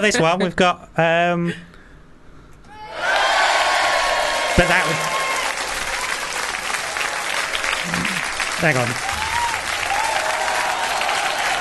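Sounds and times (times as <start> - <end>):
speech: 0.0 - 1.7, 4.6 - 5.2, 7.9 - 9.1
applause sound effect: 3.1 - 11.5.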